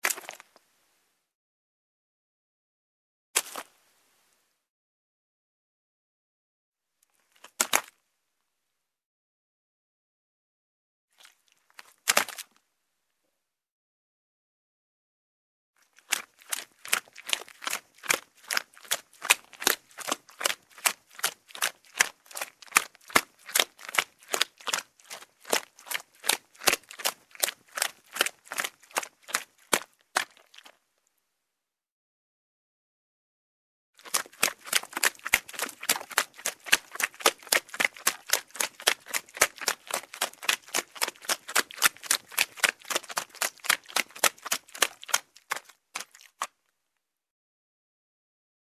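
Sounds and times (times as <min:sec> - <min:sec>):
footsteps in mud: 0:00.0 - 0:00.4, 0:03.4 - 0:03.7, 0:07.3 - 0:08.0, 0:11.2 - 0:12.6, 0:15.8 - 0:30.8, 0:34.0 - 0:46.6.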